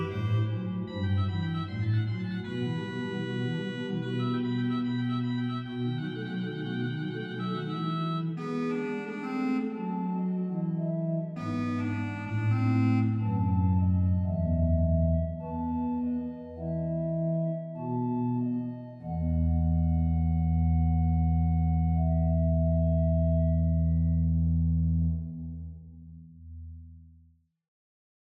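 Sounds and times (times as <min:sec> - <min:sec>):
organ dialogue of hautbois and cromorne stops: 0:00.0 - 0:24.2.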